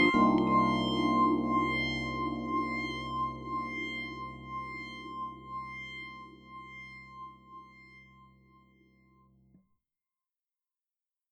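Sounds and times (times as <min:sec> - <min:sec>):
synth lead: 0:00.0 - 0:06.8.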